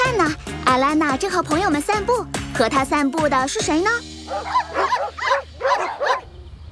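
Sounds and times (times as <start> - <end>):
speech: 0.2 - 5.1
dogs barking: 4.2 - 6.4.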